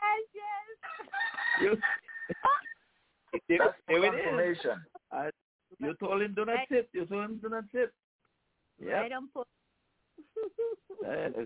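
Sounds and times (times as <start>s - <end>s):
rooster crowing: 0.8s - 2.8s
speech: 1.6s - 2.4s, 3.5s - 8.0s, 8.8s - 9.5s, 11.0s - 11.4s.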